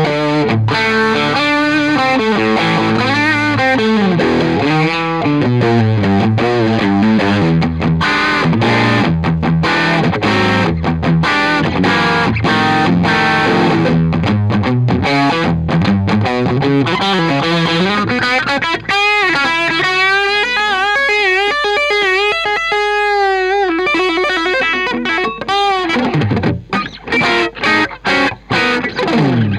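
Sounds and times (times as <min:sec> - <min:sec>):
electric guitar with volume swells: 0:00.0 - 0:29.5.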